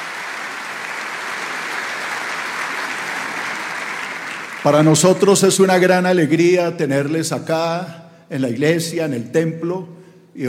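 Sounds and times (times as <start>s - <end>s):
crowd applauding: 0.0s - 5.7s
speech: 4.6s - 10.4s.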